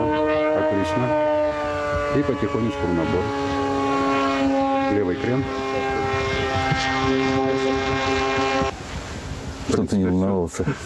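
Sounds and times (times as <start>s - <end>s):
model aircraft small propeller engine in flight: 0.0s - 8.8s
speech: 0.8s - 1.2s, 2.2s - 3.6s, 4.9s - 6.0s, 6.7s - 8.7s, 9.8s - 10.8s.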